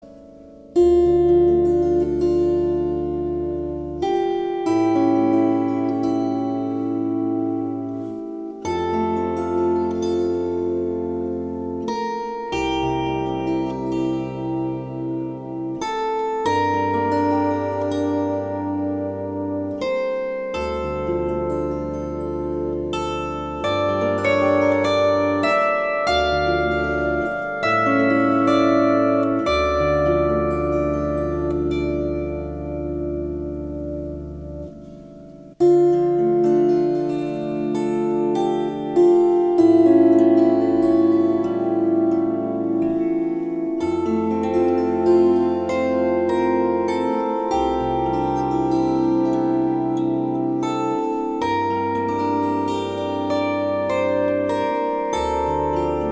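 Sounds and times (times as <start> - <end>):
sarabande: 0.0 - 56.1.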